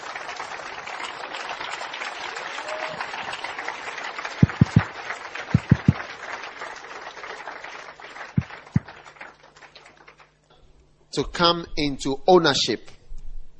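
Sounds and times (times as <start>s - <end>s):
crowd clapping: 0.0s - 10.5s
deep booming thumps: 4.4s - 4.8s, 5.6s - 6.0s
speech: 11.2s - 13.0s.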